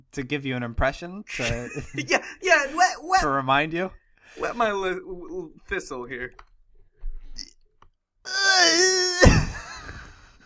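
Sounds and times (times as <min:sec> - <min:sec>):
speech: 0:00.1 - 0:06.5, 0:08.3 - 0:09.6
person coughing: 0:09.2 - 0:10.1.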